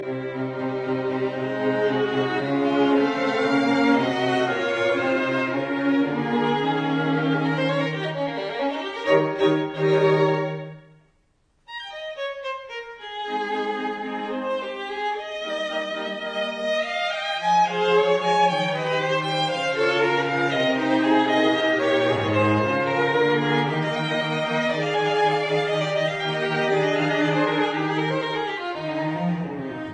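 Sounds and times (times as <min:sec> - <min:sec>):
string quartet in F minor moderato: 0:00.0 - 0:10.9, 0:11.7 - 0:29.9.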